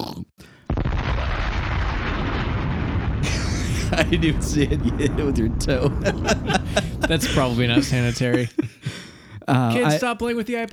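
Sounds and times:
bomb explosion sound effect: 0.7s - 8.6s
laughter: 3.2s - 10.0s
speech: 3.9s - 8.8s, 9.5s - 10.7s.

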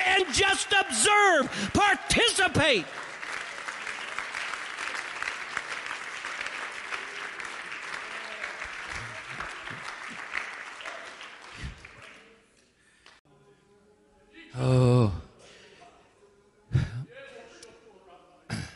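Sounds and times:
audience clapping: 0.0s - 13.2s
speech: 0.3s - 3.1s.

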